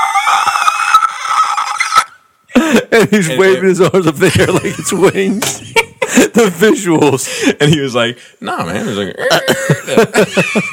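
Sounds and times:
person imitating dragon screech: 0:00.0 - 0:02.3
laughter: 0:02.6 - 0:07.2, 0:08.8 - 0:10.7
speech: 0:02.9 - 0:10.7.

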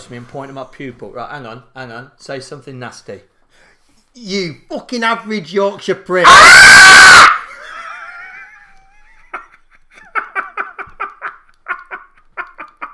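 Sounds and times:
speech: 0:00.1 - 0:03.3, 0:04.2 - 0:07.3
person imitating a hawk screech: 0:06.2 - 0:07.4.

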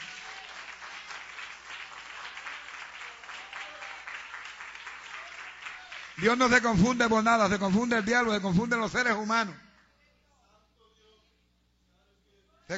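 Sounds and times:
audience clapping: 0:00.0 - 0:06.7
speech: 0:06.2 - 0:09.6.

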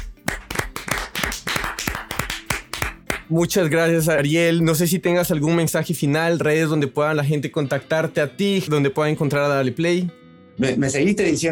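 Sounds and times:
hands clapping: 0:00.0 - 0:03.4
speech: 0:03.3 - 0:11.5.

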